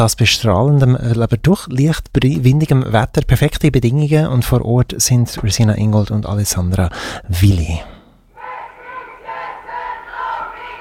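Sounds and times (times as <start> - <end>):
speech: 0.0 - 8.0
protest crowd chanting at a demonstration: 8.3 - 10.8.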